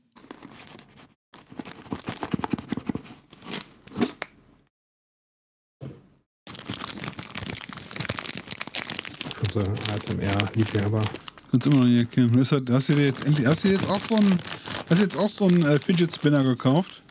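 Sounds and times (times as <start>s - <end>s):
cardboard box crinkling: 1.4s - 3.0s, 6.5s - 12.0s, 12.7s - 17.0s
speech: 9.6s - 17.0s.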